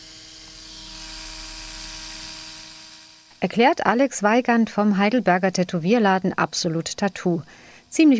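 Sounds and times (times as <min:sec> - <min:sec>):
electric tattoo machine buzzing: 0:00.0 - 0:03.4
speech: 0:03.4 - 0:08.1.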